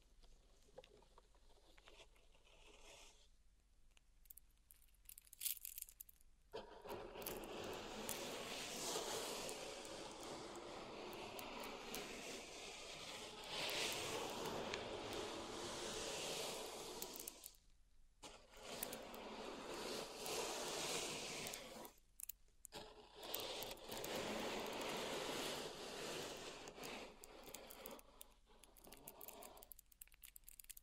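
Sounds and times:
pink salt raked in a zen garden: 7.2 - 17.6, 18.2 - 22.0, 22.8 - 30.8.

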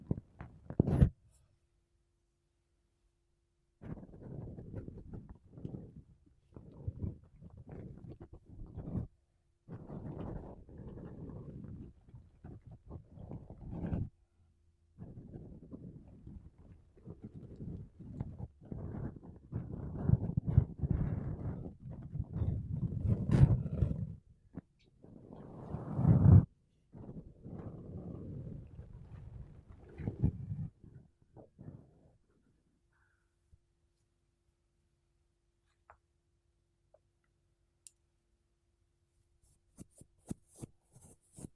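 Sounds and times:
makeup brushes and sponge rubbing against a microphone: 3.8 - 14.2, 15.0 - 32.1, 39.4 - 41.5.

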